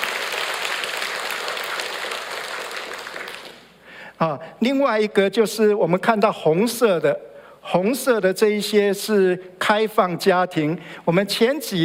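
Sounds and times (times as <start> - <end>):
audience applause: 0.0 - 3.7
speech: 4.2 - 11.8.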